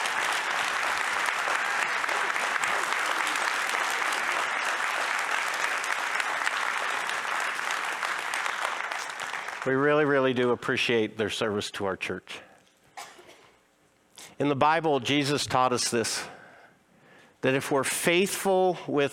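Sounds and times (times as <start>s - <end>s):
audience clapping: 0.0s - 10.3s
speech: 9.6s - 12.5s, 14.4s - 16.4s, 17.4s - 19.1s.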